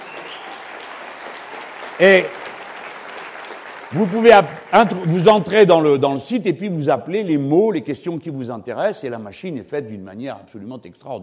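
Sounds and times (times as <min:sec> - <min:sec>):
audience applauding: 0:00.0 - 0:06.0
speech: 0:02.0 - 0:02.4, 0:03.9 - 0:11.2.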